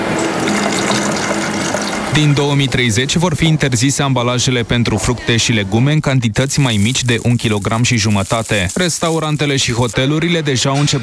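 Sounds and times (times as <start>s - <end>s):
drink pouring into a bottle: 0.2s - 2.1s, 6.5s - 10.0s
speech: 2.2s - 11.0s.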